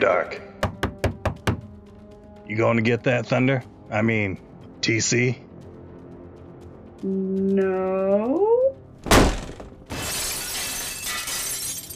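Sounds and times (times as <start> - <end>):
speech: 0.0 - 0.5, 2.5 - 5.4, 7.0 - 9.2
door being kicked in: 9.0 - 9.8.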